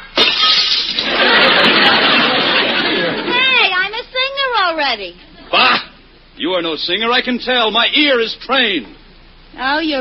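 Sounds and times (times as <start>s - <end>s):
glass shattering: 0.2s - 2.0s
laughter: 0.9s - 3.5s
speech: 5.0s - 5.8s, 6.4s - 9.9s.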